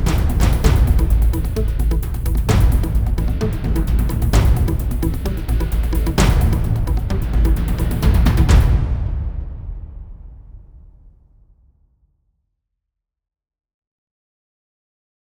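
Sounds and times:
fight music: 0.0 - 9.0.

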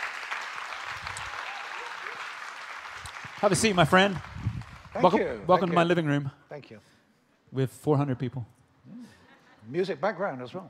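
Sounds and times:
church audience applause welcoming a guest on stage: 0.0 - 6.0
speech: 3.4 - 4.3, 5.0 - 8.6, 9.7 - 10.6.

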